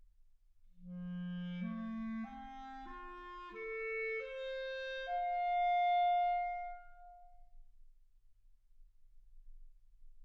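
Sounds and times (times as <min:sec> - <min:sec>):
clarinet: 0:00.8 - 0:07.5.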